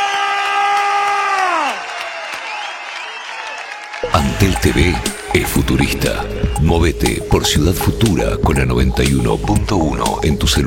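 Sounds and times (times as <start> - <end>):
audience applause and cheering: 0.0 - 7.4
speech: 4.1 - 10.6.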